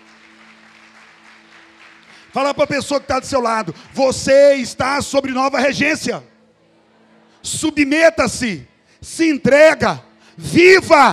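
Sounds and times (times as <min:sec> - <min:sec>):
audience applauding: 0:00.0 - 0:04.3
speech: 0:02.3 - 0:06.3, 0:07.4 - 0:11.1.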